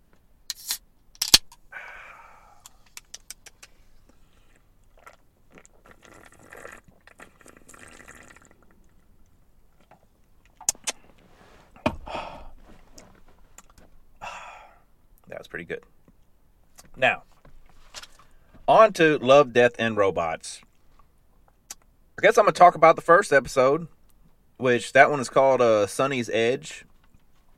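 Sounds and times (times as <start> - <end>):
energy drink can cracked open: 0.5 - 1.6
liquid and sipping: 4.2 - 9.1
speech: 15.5 - 16.0, 17.0 - 17.3, 18.7 - 20.7, 22.2 - 24.0, 24.6 - 26.9.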